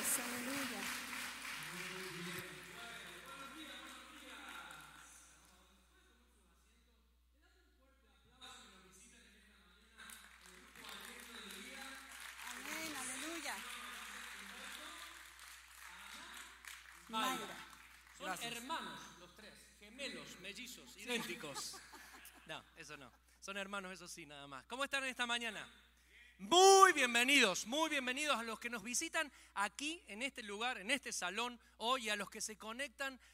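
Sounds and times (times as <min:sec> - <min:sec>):
audience applause: 0:00.0 - 0:05.0, 0:10.0 - 0:18.7
speech: 0:18.3 - 0:19.1, 0:20.0 - 0:21.9, 0:22.5 - 0:25.8, 0:26.4 - 0:33.3
laughter: 0:21.0 - 0:23.2.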